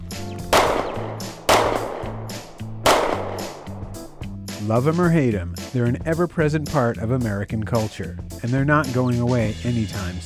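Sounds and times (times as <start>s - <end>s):
gunshots: 0.5s - 4.4s
speech: 4.7s - 10.2s.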